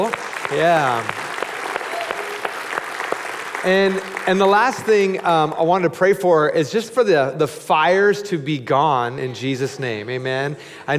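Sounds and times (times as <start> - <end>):
speech: 0.0 - 1.2, 3.6 - 10.9
audience applause: 0.0 - 6.0.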